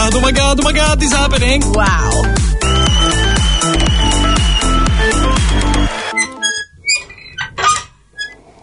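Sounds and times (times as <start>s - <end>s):
speech: 0.1s - 2.5s
door squeaking: 2.6s - 8.4s.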